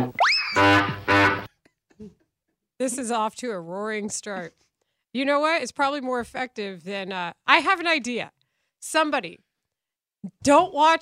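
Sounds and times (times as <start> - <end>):
buzzy bike horn honks: 0.0 - 1.5
cartoon clown whistle-like boing: 0.0 - 1.5
speech: 2.8 - 9.4, 10.2 - 11.0.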